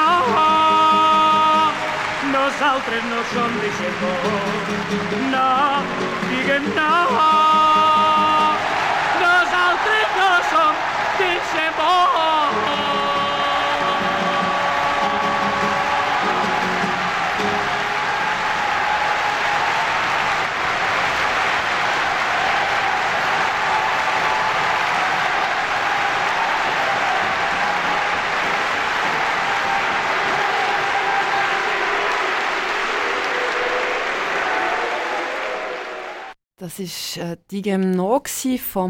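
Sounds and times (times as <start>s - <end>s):
live concert audience applause: 0.0s - 36.4s
speech: 2.6s - 7.9s, 36.6s - 38.8s.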